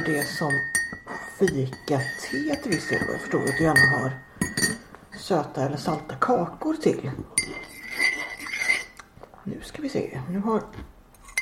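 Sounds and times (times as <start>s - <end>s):
speech: 0.0s - 4.3s, 5.2s - 7.5s, 9.5s - 10.9s
spoon clinking glass while stirring sugar into tea: 0.0s - 4.8s, 7.4s - 9.0s.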